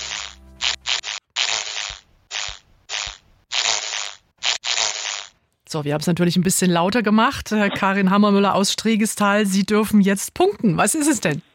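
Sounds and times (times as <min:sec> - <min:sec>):
ladybird flying in with buzzing wings: 0:00.0 - 0:05.3
speech: 0:05.7 - 0:11.5.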